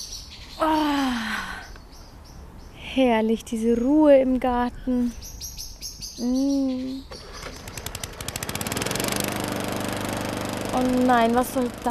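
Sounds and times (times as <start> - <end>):
speech: 3.0 - 5.3, 6.2 - 7.2, 10.8 - 11.8
lawn mower running in a garden: 7.1 - 11.8.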